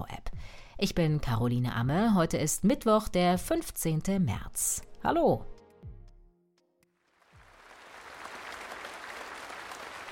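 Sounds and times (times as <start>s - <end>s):
speech: 0.8s - 5.5s
loud applause in assembly hall: 7.2s - 10.0s.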